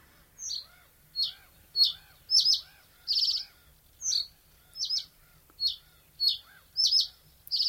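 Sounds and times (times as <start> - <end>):
reed bunting singing: 0.4 - 7.6.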